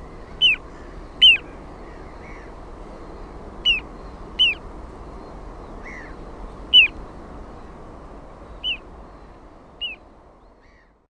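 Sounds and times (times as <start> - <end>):
little ringed plover down-slurred whistle calls: 1.2 - 1.4, 3.6 - 3.8, 4.4 - 4.6, 6.7 - 7.0, 8.6 - 8.8, 9.8 - 10.0.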